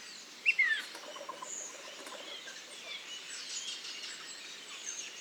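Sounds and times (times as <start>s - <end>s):
redwing soft twittering subsong: 0.5s - 3.8s.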